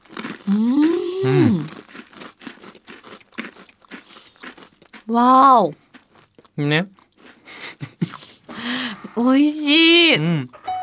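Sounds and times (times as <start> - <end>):
person biting into and chewing a baked cookie: 0.0 - 5.1, 5.7 - 8.0
speech: 0.5 - 1.8, 5.1 - 5.8, 6.6 - 7.0, 9.2 - 10.6
laughter: 7.5 - 8.6.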